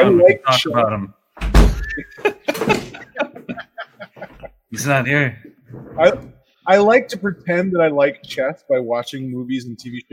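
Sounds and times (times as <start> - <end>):
speech: 0.0 - 1.2, 2.0 - 2.8, 4.7 - 5.4, 6.0 - 10.1
door being shut: 1.4 - 3.1
laughter: 1.8 - 4.6.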